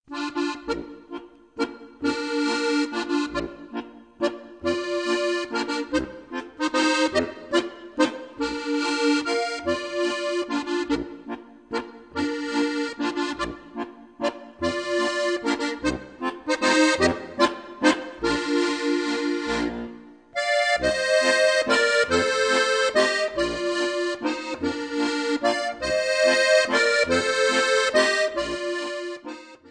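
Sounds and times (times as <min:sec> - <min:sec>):
waltz music: 0:00.1 - 0:29.7.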